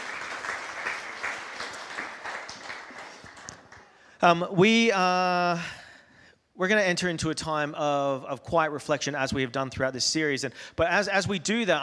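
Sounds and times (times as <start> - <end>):
audience applause: 0.0 - 4.0
speech: 4.2 - 5.8, 6.6 - 11.8.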